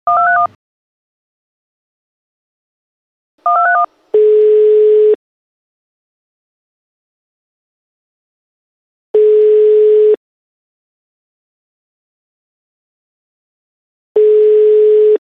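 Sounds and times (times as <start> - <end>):
phone ringing: 0.0 - 0.6, 3.4 - 5.2, 9.2 - 10.2, 14.2 - 15.2.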